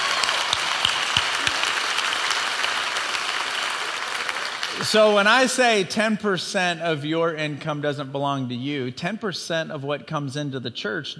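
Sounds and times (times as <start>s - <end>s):
audience clapping: 0.0s - 5.8s
speech: 4.8s - 11.1s.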